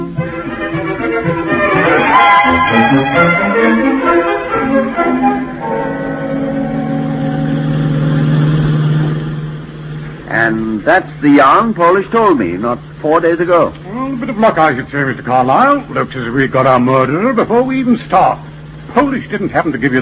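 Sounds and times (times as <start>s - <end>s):
taxi cab engine humming while driving along: 0.1s - 12.9s
speech: 10.9s - 20.0s.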